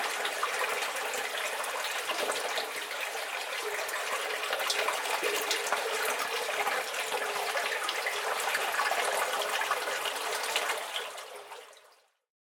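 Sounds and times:
water stream in a pipe in Scotland: 0:00.0 - 0:12.1.

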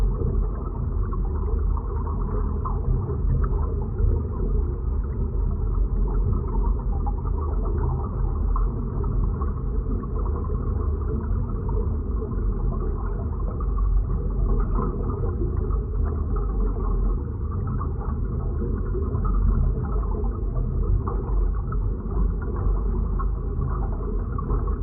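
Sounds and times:
underwater ambience in an iron sewer: 0:00.0 - 0:24.8.

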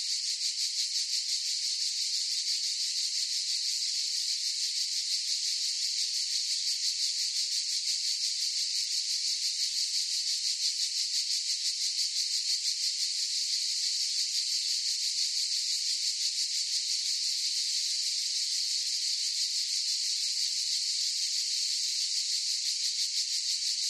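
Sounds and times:
cicadas buzzing in a forest chorus: 0:00.0 - 0:23.8.

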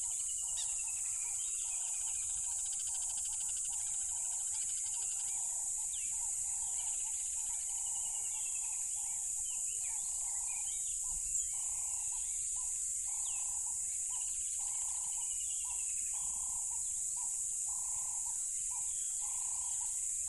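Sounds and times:
pulsing croak: 0:00.0 - 0:10.8, 0:11.5 - 0:20.2
upswept bird chirps: 0:00.0 - 0:20.0
crickets trilling: 0:00.0 - 0:20.2.

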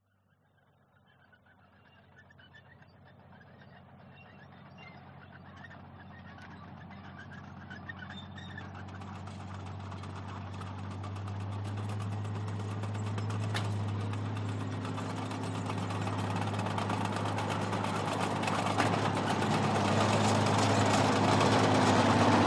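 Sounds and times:
1939 Matilda Mk 2 tank passing by close: 0:01.2 - 0:22.4.

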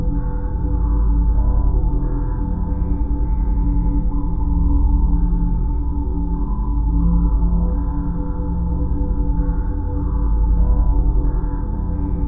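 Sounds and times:
horror drone atmosphere sound design: 0:00.0 - 0:12.2.

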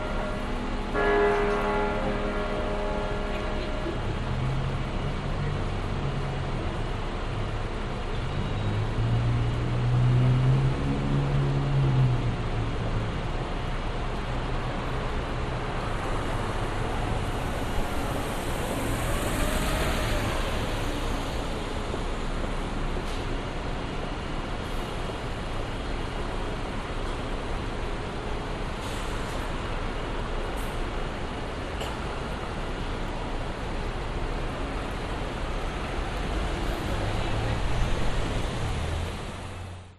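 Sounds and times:
city hall bell strikes: 0:00.0 - 0:04.0
city street traffic: 0:00.0 - 0:39.9
pedestrians at a city street bus stop: 0:00.0 - 0:39.9.

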